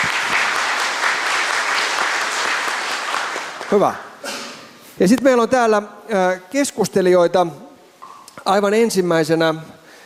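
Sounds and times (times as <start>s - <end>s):
audience applause: 0.0s - 3.9s
speech: 3.7s - 4.1s, 5.0s - 7.6s, 8.5s - 9.8s.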